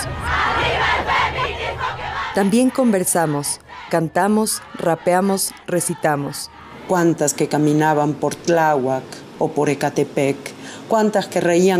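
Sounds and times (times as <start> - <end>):
crowd of protesters shouting: 0.0 - 6.9
speech: 2.4 - 11.7.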